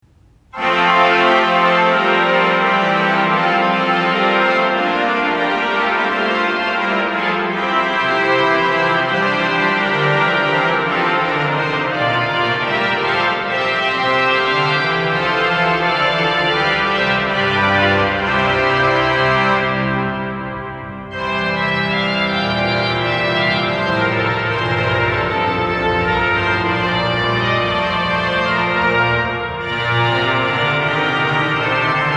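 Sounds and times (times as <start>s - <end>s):
full organ grand jeu registration: 0.5s - 32.1s.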